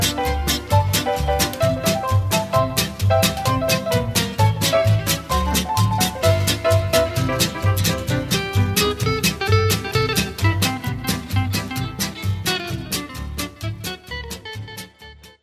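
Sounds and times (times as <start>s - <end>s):
music: 0.0s - 15.4s.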